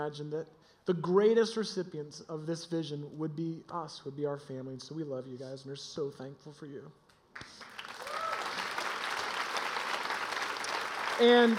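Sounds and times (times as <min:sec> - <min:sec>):
speech: 0:00.0 - 0:07.6, 0:11.2 - 0:11.5
audience applause: 0:07.4 - 0:11.5.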